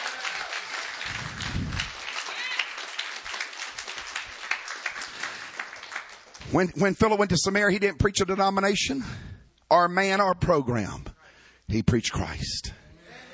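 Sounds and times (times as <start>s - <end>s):
audience clapping hands: 0.0s - 6.7s
speech: 6.5s - 11.1s, 11.7s - 12.8s.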